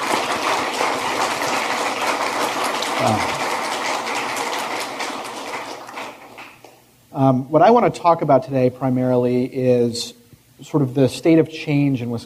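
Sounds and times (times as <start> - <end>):
audience applause: 0.0 - 6.7
speech: 3.0 - 3.4, 7.2 - 12.2.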